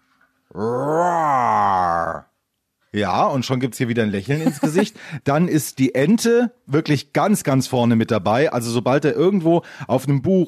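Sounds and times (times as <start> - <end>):
speech: 0.5 - 1.0, 3.0 - 10.4
person imitating a tiger's roar: 0.5 - 2.3
laughter: 4.4 - 5.0.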